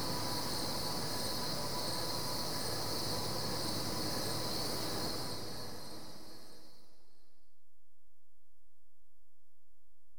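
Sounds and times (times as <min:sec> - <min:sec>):
crickets at night in Goldens Bridge New York State: 0:00.0 - 0:06.8.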